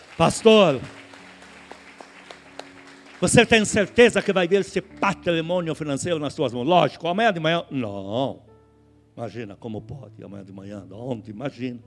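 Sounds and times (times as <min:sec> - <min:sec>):
audience applauding with soft claps: 0:00.0 - 0:04.4
speech: 0:00.2 - 0:01.0, 0:03.2 - 0:08.4, 0:09.2 - 0:11.8.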